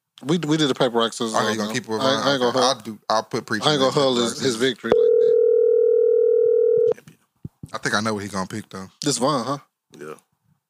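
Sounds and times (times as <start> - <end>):
speech: 0.2 - 5.0, 7.7 - 10.3
telephone dial tone: 4.9 - 7.0.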